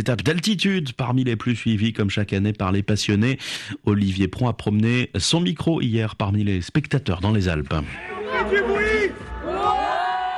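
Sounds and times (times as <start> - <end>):
speech: 0.0 - 9.3
holiday centre children cheering wildly at roadside: 8.0 - 10.3.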